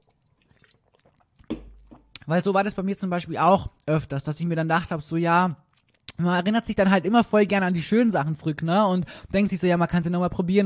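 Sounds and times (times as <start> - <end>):
person taking a drink: 0.0 - 2.3, 5.6 - 6.2
wet mouth clicks: 0.1 - 2.3, 5.6 - 6.2
speech: 2.3 - 5.6, 6.2 - 10.6.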